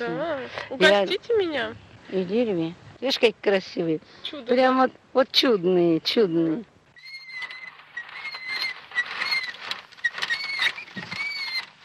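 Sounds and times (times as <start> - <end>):
speech: 0.0 - 6.7
squeaking unoiled child's tricycle: 6.2 - 11.8.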